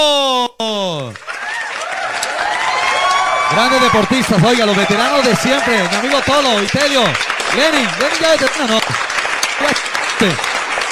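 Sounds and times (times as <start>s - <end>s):
audience applause welcoming a team: 1.1s - 10.9s
speech: 3.6s - 10.5s.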